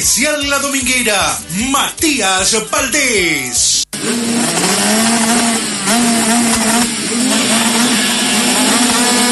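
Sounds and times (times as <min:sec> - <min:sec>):
speech: 0:00.0 - 0:07.7
motorcycle engines roaring and revving: 0:04.0 - 0:09.3.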